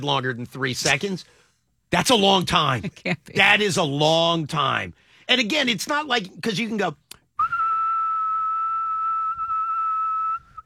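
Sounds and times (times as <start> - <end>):
speech: 0.0 - 7.0
whistle being blown hard: 7.4 - 10.6.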